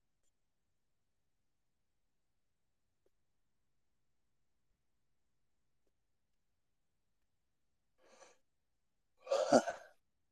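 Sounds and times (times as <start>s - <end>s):
person yawning: 9.2s - 9.9s.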